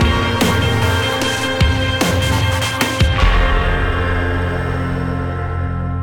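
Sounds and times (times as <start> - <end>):
boss battle game music ending: 0.0 - 5.9.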